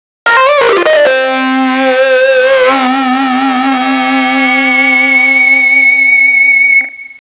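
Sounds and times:
electric guitar: 0.2 - 7.2.

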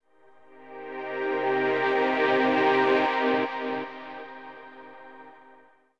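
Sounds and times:
ambient synth pad in C at 160 BPM: 0.1 - 5.8.

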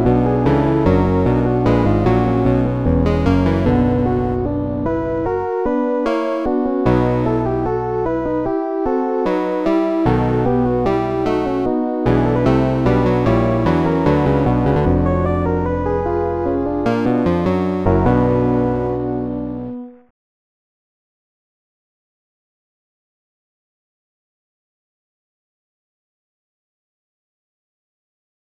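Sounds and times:
piano fugue: 0.0 - 20.1.

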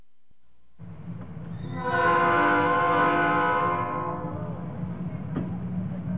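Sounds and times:
train leaving: 0.8 - 6.1.

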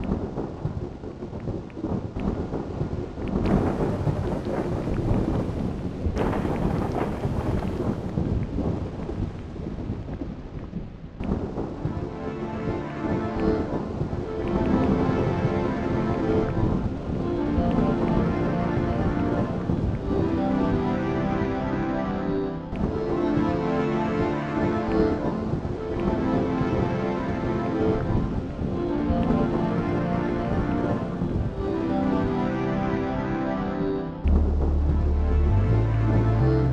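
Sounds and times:
pouring rain: 0.0 - 36.7.

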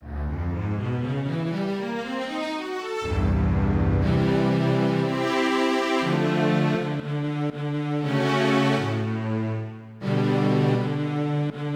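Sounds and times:
strings: 0.3 - 11.7.

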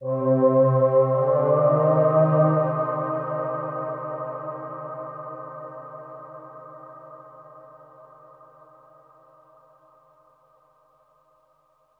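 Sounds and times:
ambient synth pad in C: 0.0 - 9.4.

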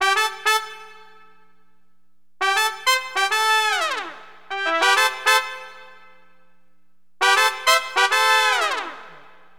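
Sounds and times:
funk horn wind instrument: 0.0 - 1.2, 2.4 - 6.1, 7.2 - 9.4.

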